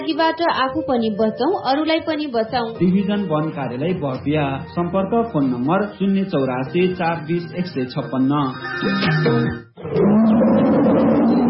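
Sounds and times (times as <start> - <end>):
speech: 0.0 - 10.2
short musical tones: 6.8 - 9.8
tiger roaring with a deep growling tone: 9.8 - 11.4.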